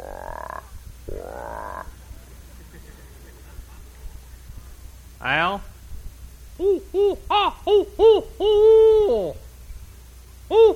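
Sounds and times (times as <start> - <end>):
bullfrog croaking: 0.0 - 2.0
low quiet hum: 0.0 - 10.7
laughter: 2.0 - 4.5
speech: 5.2 - 5.7, 6.6 - 9.4.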